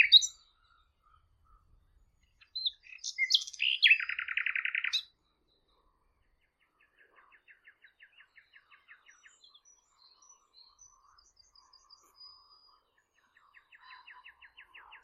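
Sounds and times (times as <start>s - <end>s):
bird song with chirps and rapid trill: 0.0s - 15.0s.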